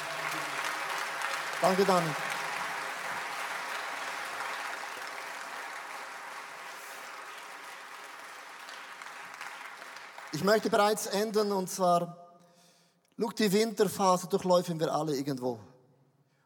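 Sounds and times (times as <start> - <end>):
audience applause: 0.0 - 11.0
speech: 1.6 - 2.3, 10.4 - 12.2, 13.2 - 15.7.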